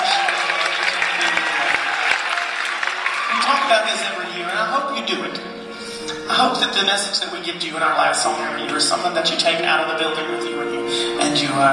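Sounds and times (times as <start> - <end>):
audience lightly applauding: 0.0 - 4.5
speech: 3.5 - 5.6, 6.3 - 11.7.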